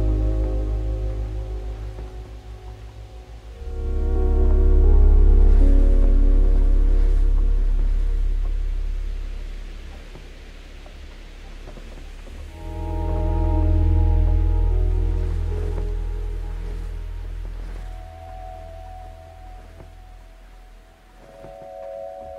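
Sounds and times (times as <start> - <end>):
city ambience: 0.0 - 22.3.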